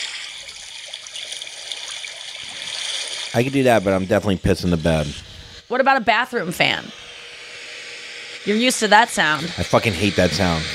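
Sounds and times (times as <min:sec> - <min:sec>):
evening lake water: 0:00.0 - 0:04.0
trickling ripples: 0:00.0 - 0:04.4
speech: 0:03.3 - 0:07.0, 0:08.4 - 0:10.7.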